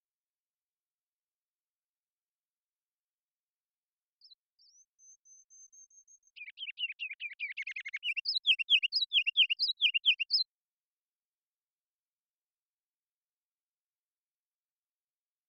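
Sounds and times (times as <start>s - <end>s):
ruby-crowned kinglet song: 4.2s - 10.5s.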